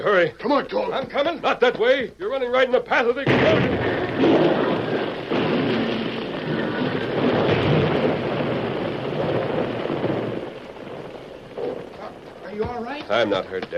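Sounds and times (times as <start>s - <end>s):
speech: 0.0s - 4.4s, 12.6s - 13.7s
mine blast bringing down rock and ice from an overhang: 3.2s - 13.7s.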